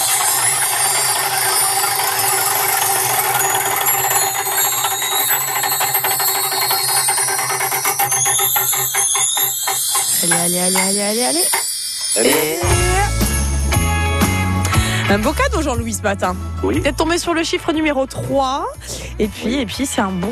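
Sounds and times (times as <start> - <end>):
radio game prize wheel spinning with pawl ticking: 0.0 - 12.4
steady tonal background: 0.0 - 20.2
speech: 15.1 - 20.2.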